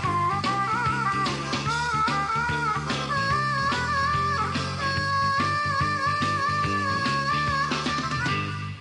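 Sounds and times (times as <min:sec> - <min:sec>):
harmonica playing blues: 0:00.0 - 0:08.8.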